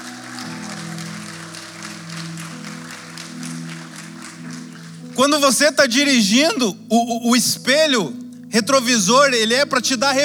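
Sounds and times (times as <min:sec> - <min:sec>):
crowd clapping: 0:00.0 - 0:06.1
speech: 0:05.2 - 0:10.2.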